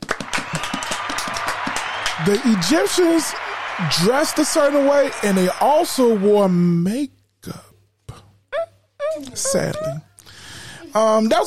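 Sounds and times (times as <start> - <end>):
audience applause: 0.0 - 6.9
speech: 2.2 - 7.7, 9.2 - 10.1, 10.9 - 11.4.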